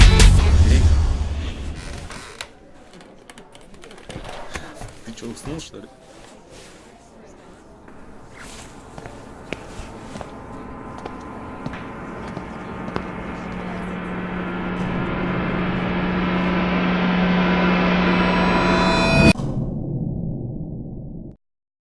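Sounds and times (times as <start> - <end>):
ambient noise: 0.0 - 2.2, 7.2 - 19.4.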